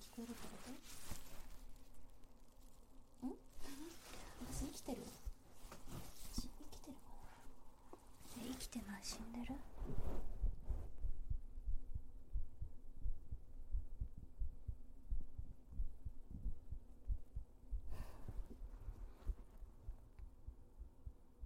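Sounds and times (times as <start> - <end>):
scratchy rustles: 0.0 - 11.1
speech: 0.2 - 1.2
heartbeat thumping: 9.8 - 21.4.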